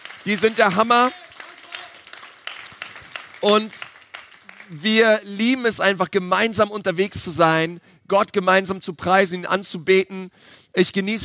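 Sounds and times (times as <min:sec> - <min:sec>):
audience applause: 0:00.0 - 0:04.8
speech: 0:00.2 - 0:01.2, 0:03.4 - 0:03.9, 0:04.7 - 0:11.2.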